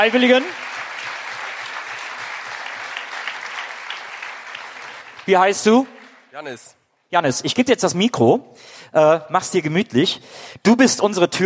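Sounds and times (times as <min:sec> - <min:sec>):
speech: 0:00.0 - 0:00.7, 0:05.3 - 0:11.4
audience applause: 0:00.0 - 0:06.4.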